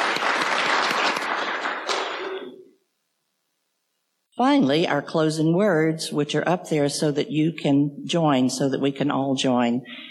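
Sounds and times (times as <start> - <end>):
audience applause: 0.0 - 2.6
speech: 4.4 - 10.0.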